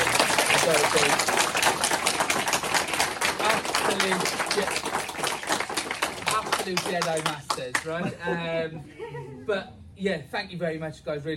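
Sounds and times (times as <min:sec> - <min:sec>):
crowd applause: 0:00.0 - 0:07.9
speech: 0:00.7 - 0:01.4, 0:06.6 - 0:11.3.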